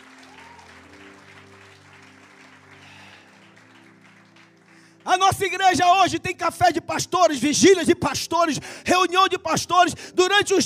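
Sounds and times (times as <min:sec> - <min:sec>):
audience applauding loudly: 0:00.0 - 0:05.6
sustained organ or keyboard chords: 0:00.0 - 0:10.6
speech: 0:05.1 - 0:10.6.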